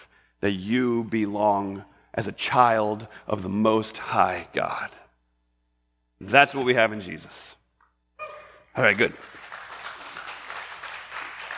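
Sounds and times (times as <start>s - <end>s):
speech: 0.4s - 5.0s, 6.2s - 7.6s, 8.8s - 9.4s
crowd applauding: 8.8s - 11.5s.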